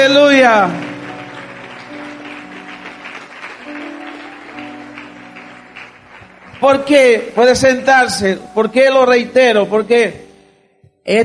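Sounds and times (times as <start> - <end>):
speech: 0.0 - 0.9, 6.6 - 10.2, 11.1 - 11.2
audience applauding: 0.0 - 7.6
sustained keyboard chords: 0.0 - 11.2.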